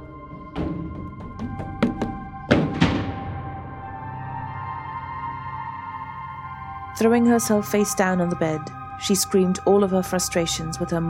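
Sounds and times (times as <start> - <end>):
footsteps stomping upstairs: 0.3 - 3.6
door slamming: 0.6 - 3.7
speech: 7.0 - 11.0.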